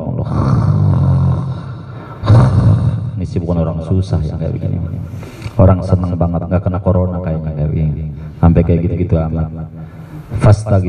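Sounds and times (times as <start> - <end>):
man imitating snoring with his voice: 0.2 - 3.0
speech: 3.4 - 10.8.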